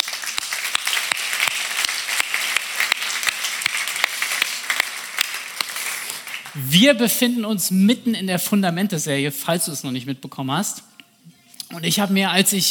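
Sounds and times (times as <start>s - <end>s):
audience applause: 0.0s - 6.6s
speech: 6.6s - 10.9s, 11.8s - 12.6s.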